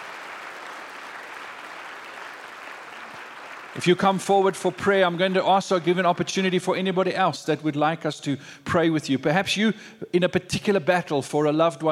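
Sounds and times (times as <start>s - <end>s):
crowd applause: 0.0s - 5.1s
speech: 3.8s - 11.9s.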